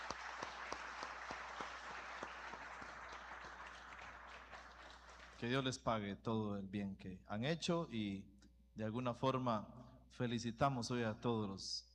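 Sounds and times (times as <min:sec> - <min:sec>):
crowd applauding: 0:00.0 - 0:05.6
speech: 0:05.4 - 0:11.9.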